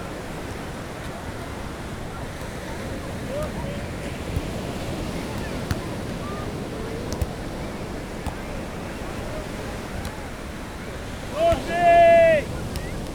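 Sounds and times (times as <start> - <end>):
ocean waves at Copacabana beach in Rio: 0.0 - 13.1
people shouting at Copacabana beach volleyball: 10.2 - 13.0.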